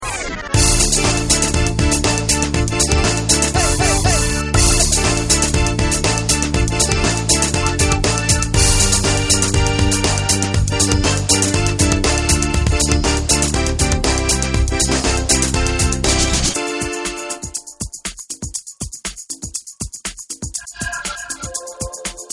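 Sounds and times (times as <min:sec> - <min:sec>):
lezginka dance music: 0:00.6 - 0:17.6.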